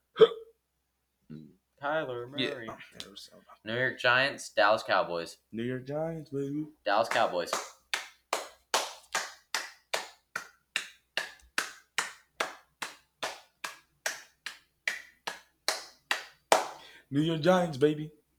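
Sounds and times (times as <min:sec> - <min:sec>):
speech: 0:01.8 - 0:07.7, 0:17.1 - 0:18.2
hands clapping: 0:07.1 - 0:16.9.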